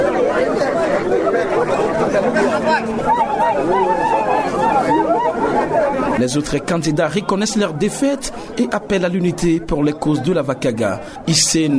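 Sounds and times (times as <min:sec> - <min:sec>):
laughter: 0:00.0 - 0:08.6
crowd cheering at election result announcement: 0:00.0 - 0:10.8
shouts or ululations: 0:02.2 - 0:06.2
speech: 0:06.2 - 0:11.7.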